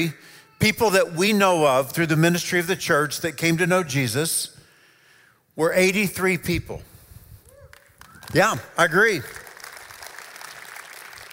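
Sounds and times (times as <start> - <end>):
speech: 0.0 - 4.6, 5.6 - 6.9, 8.3 - 9.4
subtle applause: 7.6 - 11.3.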